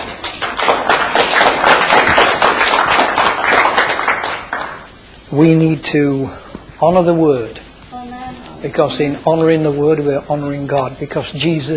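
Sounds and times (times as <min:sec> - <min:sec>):
audience clapping: 0:00.0 - 0:04.9
speech: 0:05.4 - 0:07.6, 0:08.6 - 0:11.7.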